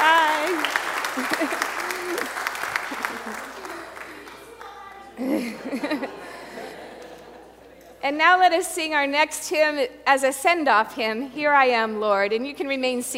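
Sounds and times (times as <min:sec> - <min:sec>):
church congregation clapping: 0:00.0 - 0:05.0
laughter: 0:01.1 - 0:07.7
speech: 0:08.1 - 0:13.1.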